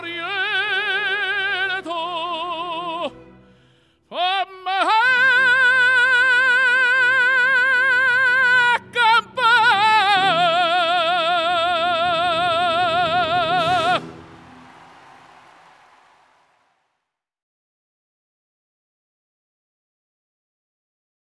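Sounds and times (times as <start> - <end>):
tenor singing opera: 0.0 - 15.3.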